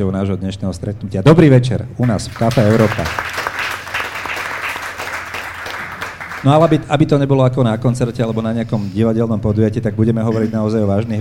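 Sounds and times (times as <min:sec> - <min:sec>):
speech: 0:00.0 - 0:03.4, 0:06.4 - 0:11.1
audience clapping at a café talk event: 0:02.0 - 0:06.9.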